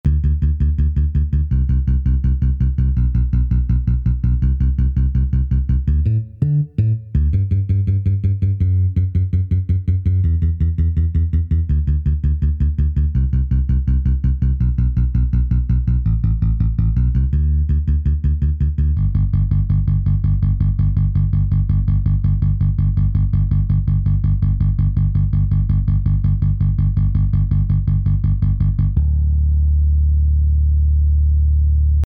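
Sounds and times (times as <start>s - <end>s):
bass: 0.0s - 32.0s.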